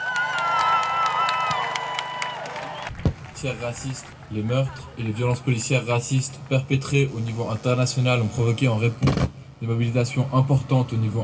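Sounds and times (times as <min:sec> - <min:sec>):
protest crowd applauding and cheering: 0:00.0 - 0:04.3
speech: 0:03.4 - 0:11.2.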